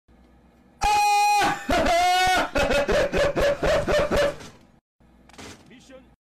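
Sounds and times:
Korean person laughing: 0:01.3 - 0:04.4.

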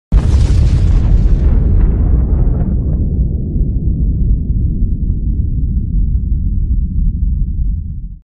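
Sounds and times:
big explosion: 0:00.1 - 0:08.2.

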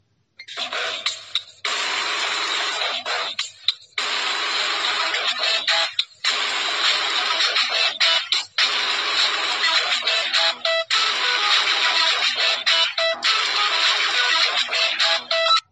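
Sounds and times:
distorted Motorola phone ringtone: 0:00.4 - 0:15.6.

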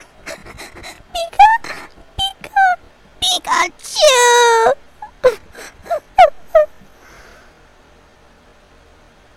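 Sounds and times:
person crying: 0:00.0 - 0:02.8, 0:03.5 - 0:06.9.

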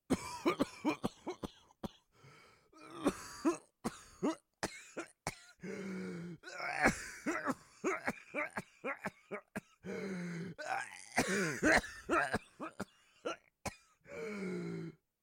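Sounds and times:
coughing: 0:00.1 - 0:02.1, 0:02.8 - 0:05.7, 0:06.4 - 0:14.1
breathing: 0:02.1 - 0:02.8, 0:05.6 - 0:06.4, 0:09.8 - 0:10.6, 0:14.1 - 0:14.9.

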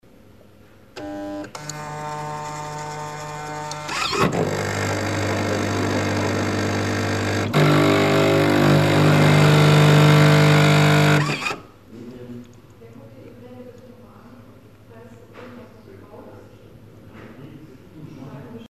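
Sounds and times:
coffee machine heating: 0:01.0 - 0:11.6.

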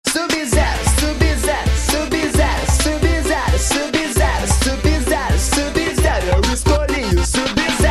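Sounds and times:
funk music: 0:00.0 - 0:07.9.

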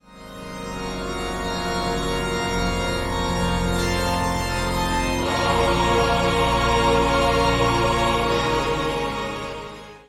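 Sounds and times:
organ: 0:00.0 - 0:10.0.

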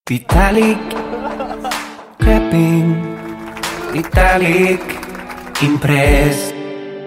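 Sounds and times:
laughter: 0:00.1 - 0:02.2
small group clapping: 0:00.2 - 0:06.4.

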